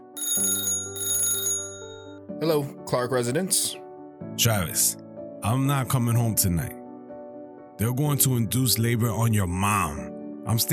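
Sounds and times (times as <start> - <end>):
telephone ringing: 0.0 - 2.3
speech: 2.4 - 6.8, 7.8 - 10.7.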